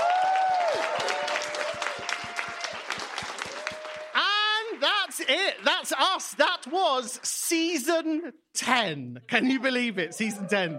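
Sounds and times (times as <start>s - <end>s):
audience round of applause: 0.0s - 7.2s
speech: 5.3s - 10.7s.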